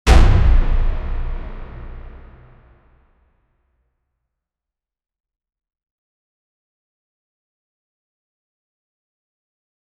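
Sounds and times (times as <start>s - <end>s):
dramatic trailer music bed: 0.1s - 2.8s.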